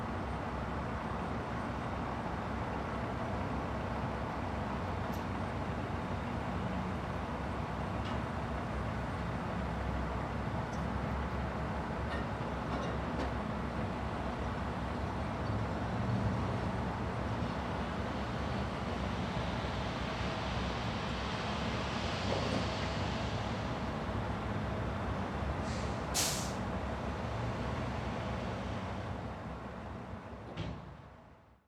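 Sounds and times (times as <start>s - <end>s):
construction ambience: 0.1s - 31.4s.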